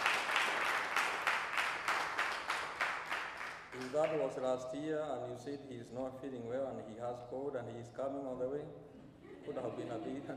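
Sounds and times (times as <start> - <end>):
audience clapping: 0.0 - 4.4
speech: 3.9 - 10.3
laughter: 9.2 - 10.3.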